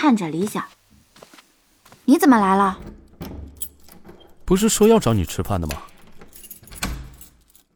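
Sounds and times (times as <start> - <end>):
speech: 0.0 - 0.8, 2.1 - 3.0, 4.5 - 5.9
door pushed open: 2.4 - 7.6
keys jingling: 2.4 - 7.7
lock turning with a metallic clack: 2.4 - 7.7.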